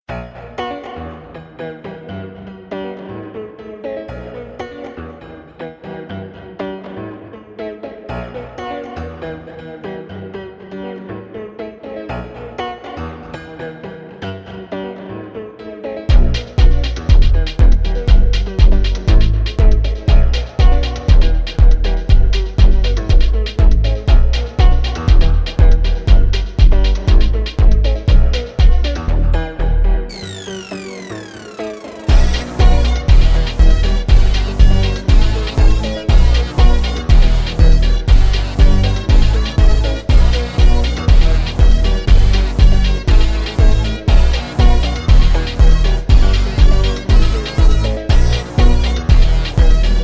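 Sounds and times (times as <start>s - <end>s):
energetic melodic dance music at 432 Hz: 16.1s - 28.8s, 30.1s - 50.0s.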